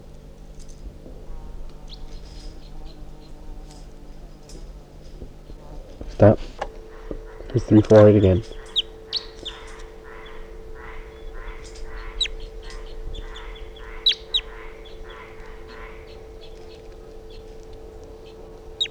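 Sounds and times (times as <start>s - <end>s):
low electrical hum: 0.0s - 18.8s
wild bird chittering and chirping: 6.0s - 18.8s
speech: 6.2s - 6.5s, 7.6s - 8.6s.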